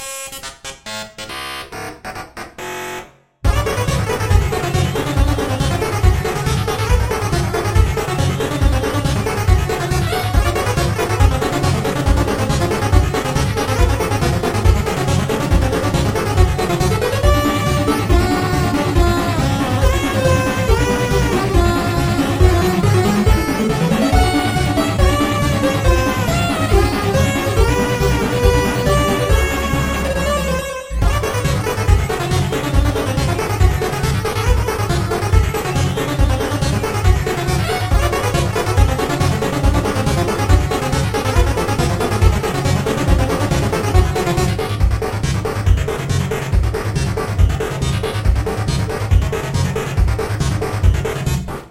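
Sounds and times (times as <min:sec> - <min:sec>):
metal music: 0:00.0 - 0:51.7.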